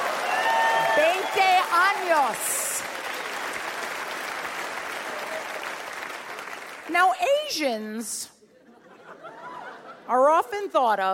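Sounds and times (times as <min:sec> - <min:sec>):
audience applause: 0:00.0 - 0:06.9
speech: 0:06.9 - 0:08.4, 0:10.1 - 0:11.1
laughter: 0:08.5 - 0:10.4.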